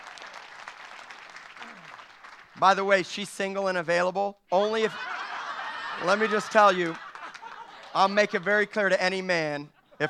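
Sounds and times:
audience applause: 0.0s - 2.6s, 5.7s - 8.5s
speech: 2.6s - 5.1s, 6.0s - 7.0s, 7.9s - 10.0s
laughter: 4.6s - 9.0s, 9.7s - 10.0s.

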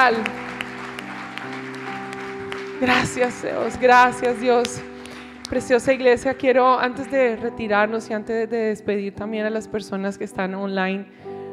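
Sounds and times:
speech: 0.0s - 0.5s, 2.8s - 4.9s, 5.5s - 11.2s
crowd clapping in a large room: 0.0s - 7.4s
sustained musical tones: 0.0s - 7.9s.

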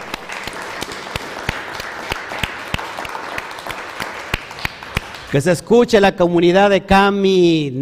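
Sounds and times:
loud audience applause: 0.0s - 5.5s
speech: 5.3s - 7.8s.

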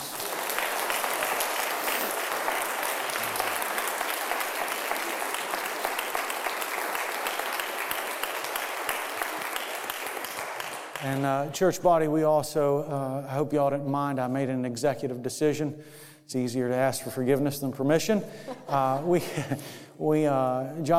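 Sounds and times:
audience applauding: 0.0s - 11.3s
speech: 11.1s - 20.9s
laughter: 18.4s - 19.6s.

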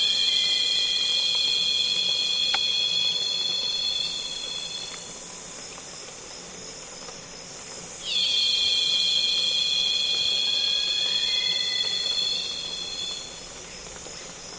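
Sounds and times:
cicada call: 0.0s - 5.2s, 7.9s - 14.2s.

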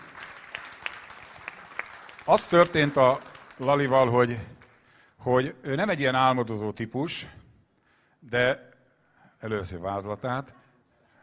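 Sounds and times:
applause: 0.0s - 5.0s
speech: 2.3s - 4.6s, 5.2s - 7.4s, 8.2s - 8.7s, 9.4s - 10.6s.

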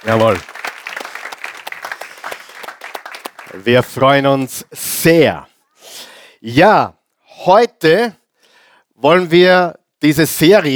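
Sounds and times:
speech: 0.0s - 0.5s, 3.6s - 8.2s, 9.0s - 10.7s
audience applause: 0.0s - 4.5s.

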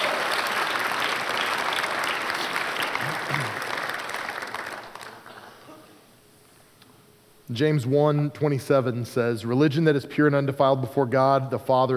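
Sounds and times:
audience applause: 0.0s - 5.6s
speech: 7.5s - 11.9s.

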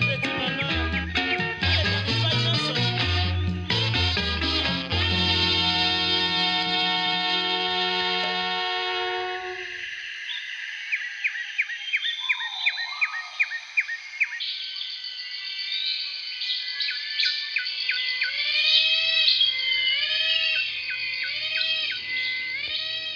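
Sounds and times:
Congolese rumba music with bass and guitar: 0.0s - 9.7s
tropical birds chirping, whistling and trilling: 0.0s - 23.1s.

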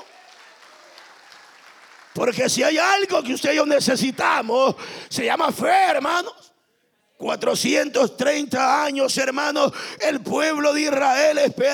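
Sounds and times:
audience applauding: 0.0s - 3.1s
speech: 2.2s - 6.5s, 7.2s - 11.7s.

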